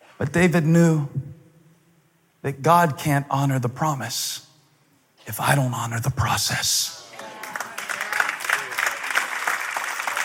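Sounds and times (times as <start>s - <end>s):
speech: 0.2s - 1.2s, 2.4s - 4.5s, 5.3s - 7.0s
audience applause: 7.1s - 10.2s.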